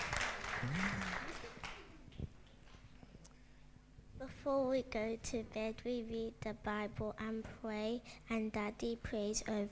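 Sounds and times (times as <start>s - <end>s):
audience applause: 0.0s - 2.1s
speech: 0.6s - 1.2s, 4.4s - 9.7s.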